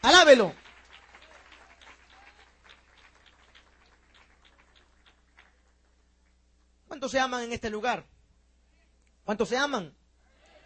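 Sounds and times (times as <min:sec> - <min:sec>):
crowd clapping hands in praise: 0:00.0 - 0:06.4
speech: 0:00.1 - 0:00.6, 0:07.0 - 0:08.1, 0:09.3 - 0:10.0.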